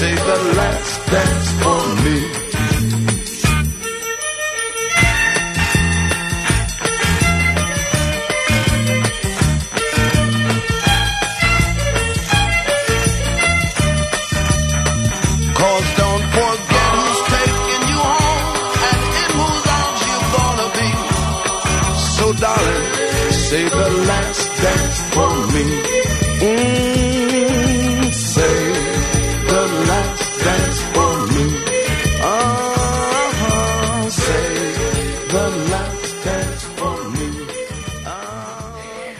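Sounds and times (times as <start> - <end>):
loud band recording: 0.0 - 38.9
speech: 0.4 - 2.4
triangle ringing: 3.2 - 34.0.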